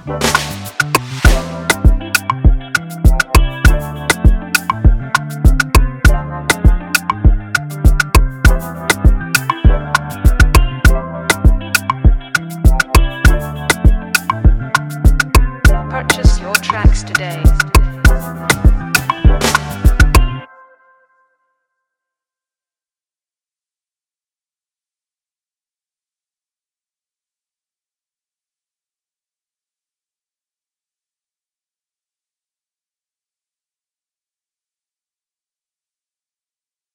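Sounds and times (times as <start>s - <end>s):
beat: 0.0s - 20.4s.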